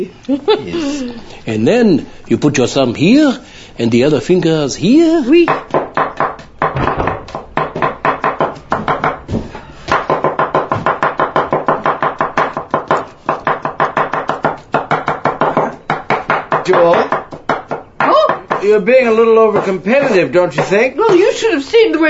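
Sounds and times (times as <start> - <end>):
speech: 0.0 - 5.8, 18.7 - 22.0
knife chopping an onion on a board: 4.4 - 21.4.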